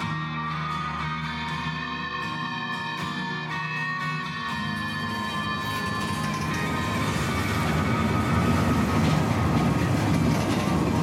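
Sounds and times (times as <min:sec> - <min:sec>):
sustained metallic tones: 0:00.1 - 0:11.0
faint rhythmic clatter: 0:04.5 - 0:11.0
moving train carriage rumbling: 0:05.6 - 0:11.0.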